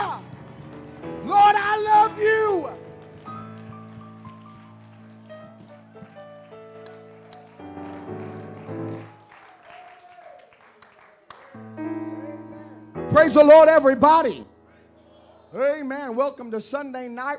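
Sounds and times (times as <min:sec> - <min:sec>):
audience clapping hands: 0:00.0 - 0:11.8
speech: 0:13.3 - 0:14.5, 0:15.5 - 0:17.3.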